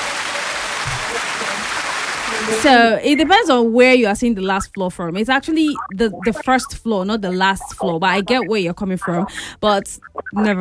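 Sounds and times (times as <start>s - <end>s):
applause: 0.0s - 2.8s
speech: 2.4s - 10.5s
voice murmuring: 3.0s - 3.5s, 5.5s - 10.5s.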